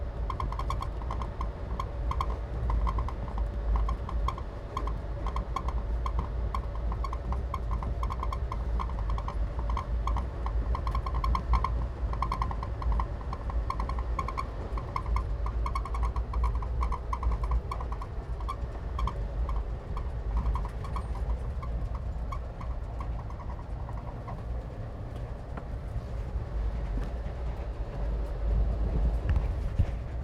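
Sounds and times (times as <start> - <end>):
industrial squeaks on a train in South India: 0.0 - 30.2.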